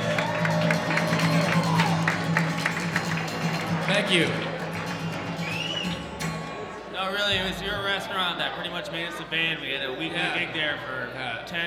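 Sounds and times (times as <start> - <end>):
audience applause: 0.0 - 6.8
speech: 4.0 - 4.5, 7.3 - 11.6.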